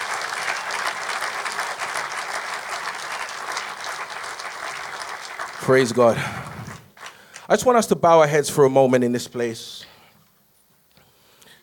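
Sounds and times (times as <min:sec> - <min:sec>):
audience clapping hands in worship: 0:00.0 - 0:07.9
speech: 0:05.6 - 0:06.5, 0:07.5 - 0:09.9.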